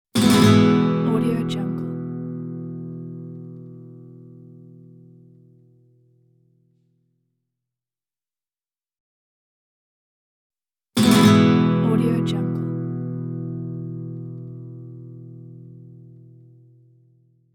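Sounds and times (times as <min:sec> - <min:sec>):
Spanish guitar E chord: 0:00.2 - 0:05.4, 0:11.0 - 0:16.8.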